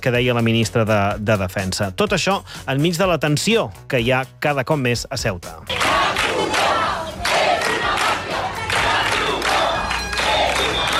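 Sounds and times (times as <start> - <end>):
speech: 0.0 - 6.7
crowd of protesters shouting: 5.7 - 10.9.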